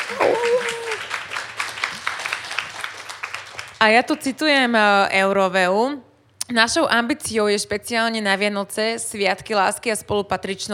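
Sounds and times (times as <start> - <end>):
audience applause: 0.0 - 3.8
speech: 3.8 - 10.7.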